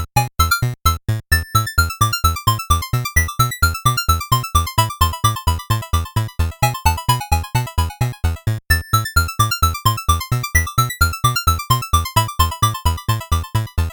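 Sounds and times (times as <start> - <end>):
8-bit background music: 0.2 - 13.9.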